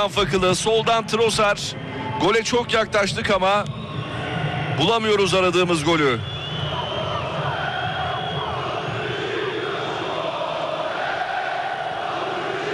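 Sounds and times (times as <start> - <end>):
speech: 0.0 - 3.8, 4.8 - 6.3
Beşiktaş football fans chanting at the Rhein-Neckar Arena in Sinsheim, Germany: 6.8 - 12.7.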